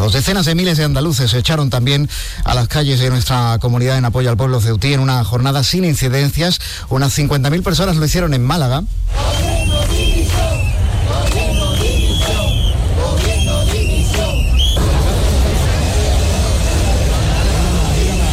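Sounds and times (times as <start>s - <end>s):
speech: 0.0s - 9.5s
protest crowd chanting slogans: 9.1s - 18.3s
street hubbub: 9.1s - 18.3s.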